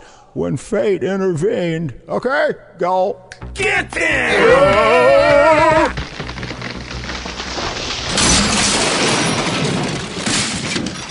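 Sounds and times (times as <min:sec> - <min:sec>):
speech: 0:00.4 - 0:06.0
tree falling and crashing through a wall: 0:04.0 - 0:11.0.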